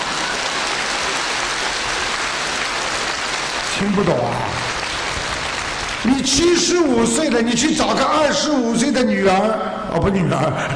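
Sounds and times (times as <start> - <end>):
audience applause: 0.0 - 7.3
speech: 3.8 - 4.7, 6.0 - 10.7.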